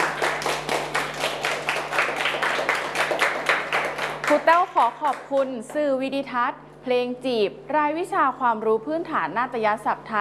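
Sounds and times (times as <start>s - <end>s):
hand clapping: 0.0s - 5.9s
speech: 4.5s - 10.1s.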